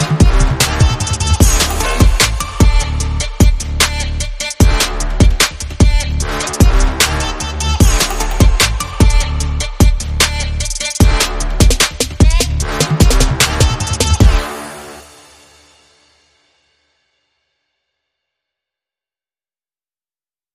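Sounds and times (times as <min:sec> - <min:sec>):
trap beat: 0:00.0 - 0:14.5.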